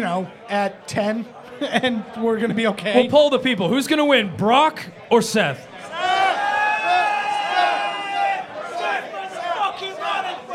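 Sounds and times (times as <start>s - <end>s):
speech: 0.0s - 5.7s
laughter: 1.4s - 3.1s
crowd cheering: 5.7s - 10.5s.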